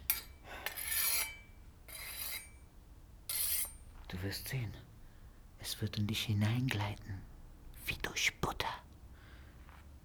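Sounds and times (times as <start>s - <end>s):
dulled blade being sharpened: 0.0s - 2.6s, 3.3s - 3.8s
speech: 4.1s - 4.9s, 5.6s - 7.3s, 7.9s - 8.7s.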